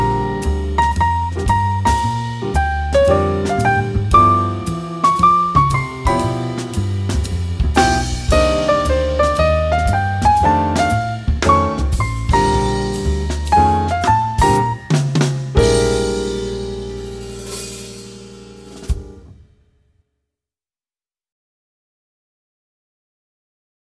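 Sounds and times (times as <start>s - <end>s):
jazz piano with piano soloist: 0.0s - 19.4s.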